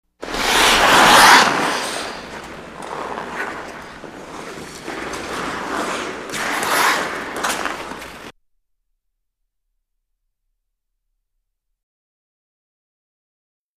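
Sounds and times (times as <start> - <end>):
hockey game sounds: 0.0 - 8.4.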